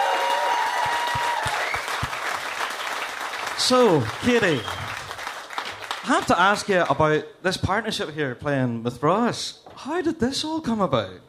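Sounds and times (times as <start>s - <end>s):
audience applause: 0.0s - 6.9s
speech: 3.6s - 4.8s, 6.0s - 11.2s.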